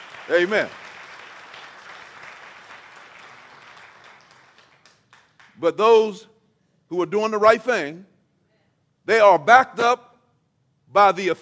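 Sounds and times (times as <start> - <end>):
audience applauding: 0.0 - 5.6
speech: 0.3 - 0.8, 5.6 - 6.3, 6.9 - 8.1, 9.0 - 10.1, 10.9 - 11.4.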